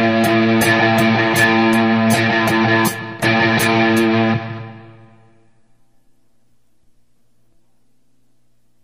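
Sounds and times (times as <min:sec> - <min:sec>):
heavy metal lead guitar: 0:00.0 - 0:05.4.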